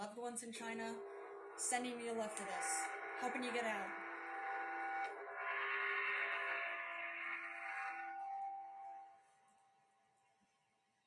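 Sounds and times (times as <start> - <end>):
speech: 0.0 - 4.0
gong ringing: 0.7 - 9.2.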